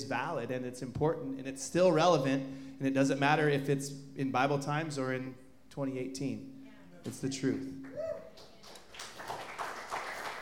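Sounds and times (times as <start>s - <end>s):
speech: 0.0s - 8.5s
audience applause: 8.4s - 10.3s.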